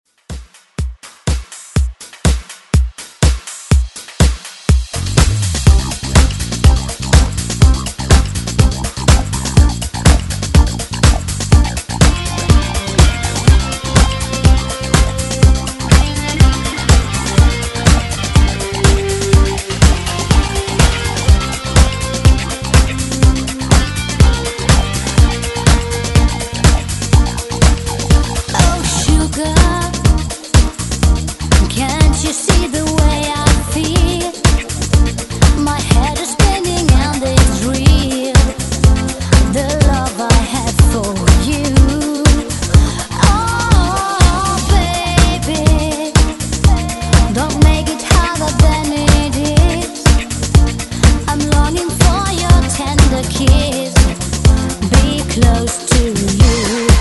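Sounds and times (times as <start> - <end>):
drum loop at 123 bpm: 0.1 - 56.9.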